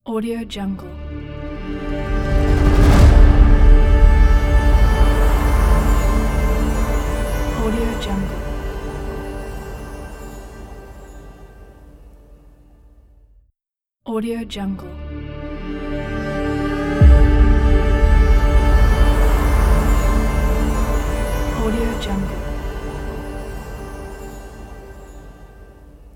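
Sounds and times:
wind audio logo: 1.1 - 11.3, 16.3 - 26.0.

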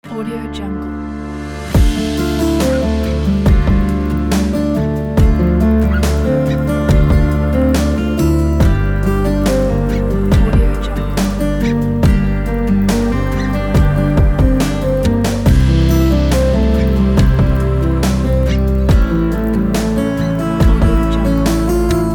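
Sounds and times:
acoustic music: 0.0 - 22.1.

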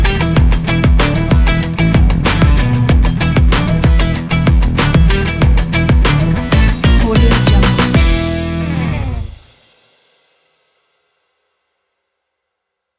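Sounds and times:
upbeat funky music: 0.0 - 9.4.

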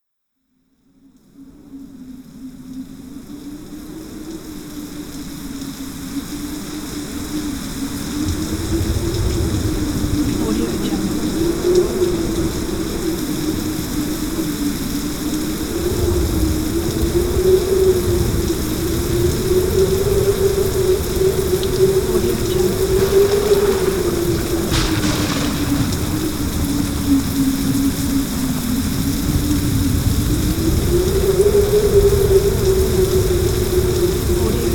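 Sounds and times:
rainstorm: 0.5 - 34.7
spooky wind: 6.0 - 34.7
thunder: 7.8 - 34.7.

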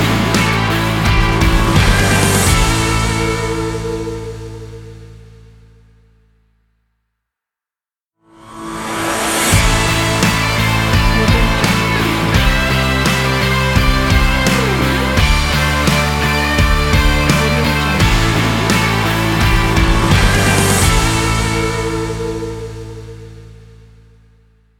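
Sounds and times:
motivational epic sports intro ident music: 0.0 - 4.7, 8.6 - 23.1.

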